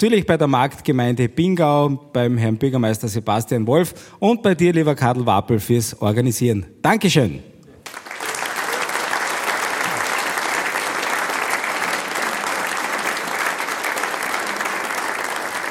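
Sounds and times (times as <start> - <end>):
speech: 0.0 - 7.5
audience applause: 7.8 - 15.7.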